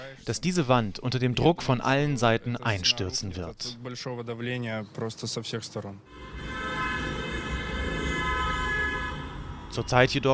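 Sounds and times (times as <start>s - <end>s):
speech: 0.1s - 6.6s, 9.7s - 10.3s
car horns honking in street protest: 6.1s - 10.2s.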